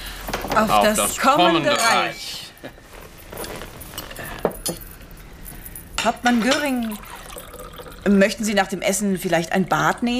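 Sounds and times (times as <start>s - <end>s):
soft murmur of shuffling: 0.1s - 4.4s
speech: 0.6s - 2.8s, 6.0s - 7.2s, 8.0s - 10.1s
glasses clinking in a toast: 0.8s - 2.4s, 3.9s - 5.0s, 5.6s - 8.1s.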